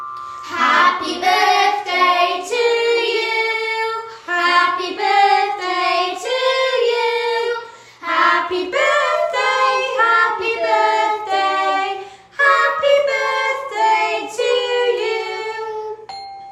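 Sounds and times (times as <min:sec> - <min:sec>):
quartet playing birthday song: 0:00.1 - 0:16.1.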